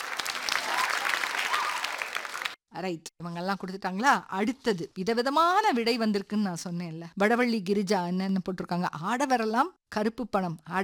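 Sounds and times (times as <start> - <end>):
audience applause: 0.0 - 2.6
speech: 2.8 - 10.8.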